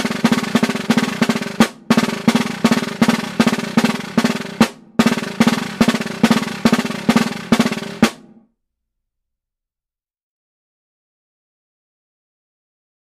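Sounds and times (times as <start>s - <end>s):
closed fifteen-stroke drum roll: 0.0s - 8.4s.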